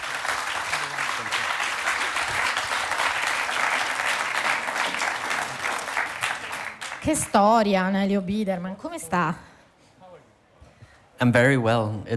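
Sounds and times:
applause: 0:00.0 - 0:07.4
speech: 0:07.0 - 0:09.5, 0:11.2 - 0:12.1.

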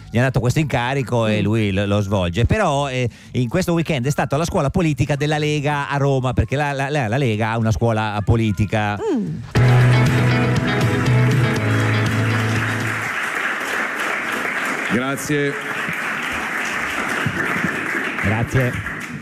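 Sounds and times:
speech: 0:00.1 - 0:11.1, 0:14.9 - 0:15.7, 0:18.2 - 0:18.9
music: 0:09.6 - 0:13.1
applause: 0:10.5 - 0:19.1.

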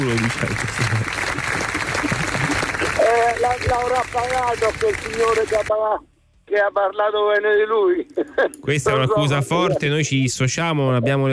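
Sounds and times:
laughter: 0:00.0 - 0:05.6, 0:08.1 - 0:09.9
audience applause: 0:00.0 - 0:05.7
speech: 0:00.1 - 0:02.2, 0:03.4 - 0:11.3.

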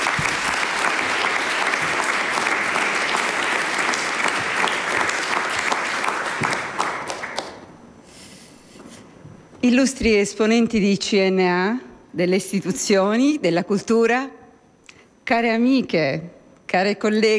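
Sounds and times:
large audience applause: 0:00.0 - 0:07.7
speech: 0:09.6 - 0:14.4, 0:15.3 - 0:17.3.

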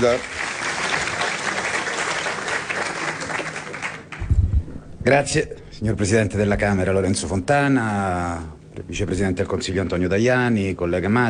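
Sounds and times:
speech: 0:00.0 - 0:00.4, 0:05.0 - 0:11.2
audience applause: 0:00.0 - 0:04.3.

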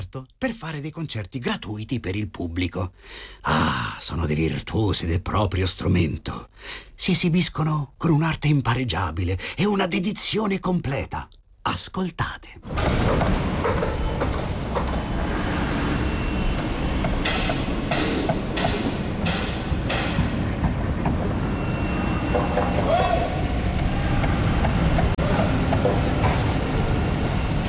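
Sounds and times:
speech: 0:00.0 - 0:14.0
excavators droning at construction site: 0:12.7 - 0:27.6.

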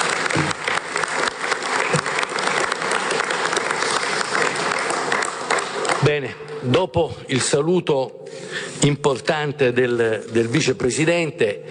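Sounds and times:
audience applause: 0:00.0 - 0:06.3
speech: 0:06.1 - 0:11.6.

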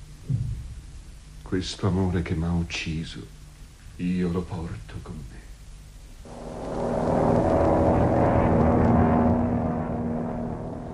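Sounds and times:
speech: 0:01.5 - 0:03.4, 0:04.0 - 0:05.5
airplane to Chile taking off: 0:06.3 - 0:10.9.

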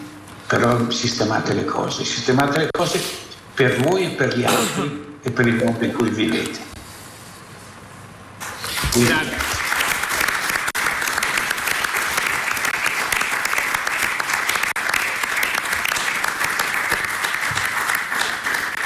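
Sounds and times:
speech: 0:00.5 - 0:06.7, 0:09.0 - 0:09.4
audience applause: 0:08.6 - 0:18.8.

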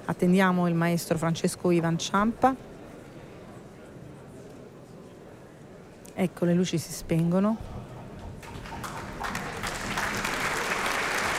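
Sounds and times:
speech: 0:00.1 - 0:02.7, 0:06.2 - 0:07.7
warm audience applause at the opera: 0:08.4 - 0:11.3.

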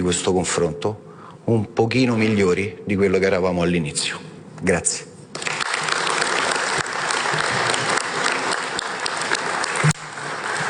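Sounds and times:
speech: 0:00.0 - 0:05.1
audience applause: 0:05.4 - 0:10.6.

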